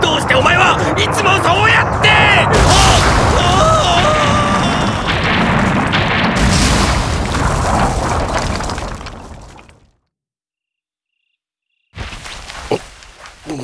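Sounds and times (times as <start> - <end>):
rocks falling from the top of a cliff in an animated drama: 0.0 - 10.0, 12.0 - 13.6.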